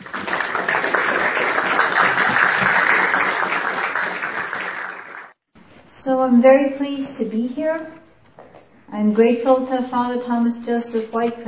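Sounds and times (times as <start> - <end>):
audience applause welcoming a speaker at an evening lecture on classical theism: 0.0 - 5.4
speech: 6.0 - 8.0, 8.9 - 11.4.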